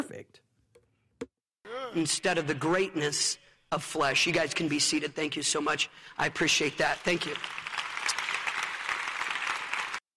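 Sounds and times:
speech: 0.1s - 0.5s, 1.2s - 7.7s
audience applauding: 6.4s - 10.1s.

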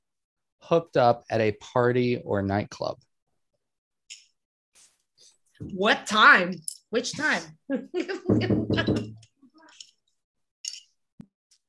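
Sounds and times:
speech: 0.6s - 3.1s, 5.6s - 9.3s
people banging on a door: 8.3s - 9.2s.

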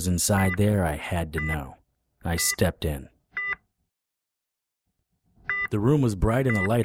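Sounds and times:
speech: 0.0s - 3.1s, 5.7s - 6.8s
heart rate monitor beep: 3.4s - 3.6s, 5.5s - 5.7s, 6.4s - 6.8s.

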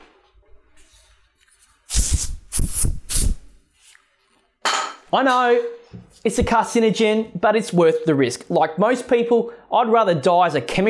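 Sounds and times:
spraying commercial grade disinfectant from a spray can: 1.9s - 3.6s
speech: 5.1s - 10.8s.

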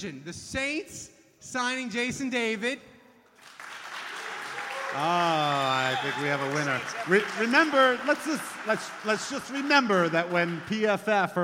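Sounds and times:
speech: 0.0s - 2.9s, 4.9s - 11.4s
audience round of applause: 3.4s - 11.2s.

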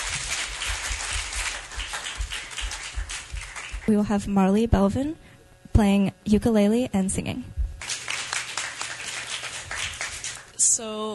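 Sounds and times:
audience applause: 0.0s - 4.0s, 7.8s - 10.5s
speech: 3.9s - 7.6s, 10.8s - 11.1s.

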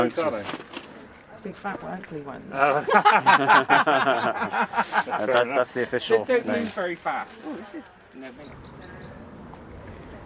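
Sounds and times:
speech: 0.0s - 0.8s, 1.4s - 9.2s
laughter: 2.6s - 5.5s
rock pipit call: 8.4s - 9.2s.

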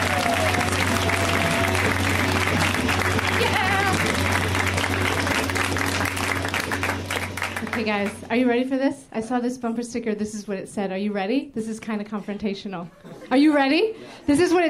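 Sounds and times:
audience applause for comedian Deanne Smith at a show: 0.0s - 8.2s
speech: 7.9s - 14.6s.

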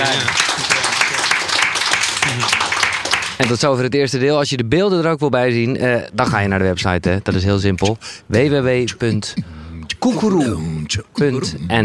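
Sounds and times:
audience applause: 0.0s - 3.6s
speech: 3.4s - 11.8s.

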